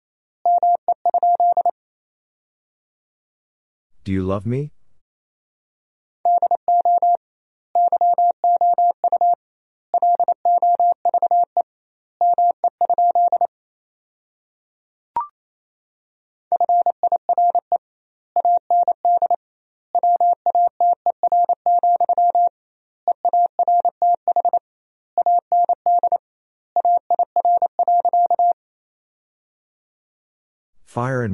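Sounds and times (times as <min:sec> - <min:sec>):
Morse code tones at 28 wpm: 0:00.5 - 0:01.7, 0:06.3 - 0:07.2, 0:07.8 - 0:09.4, 0:10.0 - 0:11.5, 0:12.2 - 0:13.5, 0:16.5 - 0:17.7, 0:18.4 - 0:19.4, 0:20.0 - 0:22.5, 0:23.1 - 0:26.2, 0:26.8 - 0:28.5
speech: 0:04.1 - 0:04.7, 0:30.9 - 0:31.3.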